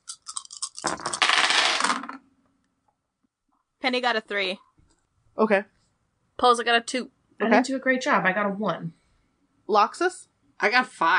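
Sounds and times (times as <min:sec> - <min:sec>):
hard dice rolling: 0:00.0 - 0:02.2
speech: 0:03.9 - 0:04.6, 0:05.4 - 0:05.8, 0:06.4 - 0:09.0, 0:09.7 - 0:11.1.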